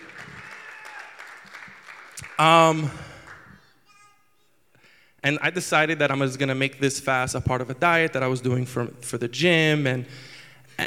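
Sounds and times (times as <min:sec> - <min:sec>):
audience applause: 0:00.0 - 0:03.5
speech: 0:02.4 - 0:03.0, 0:05.2 - 0:10.3.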